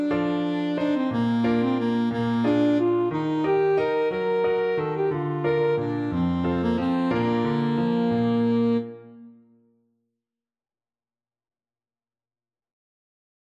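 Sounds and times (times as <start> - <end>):
alto saxophone: 0.0 - 9.6.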